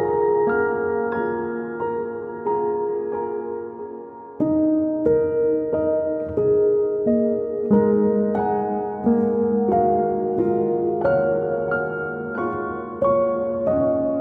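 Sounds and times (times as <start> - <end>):
deep meditation piano music: 0.0 - 14.1.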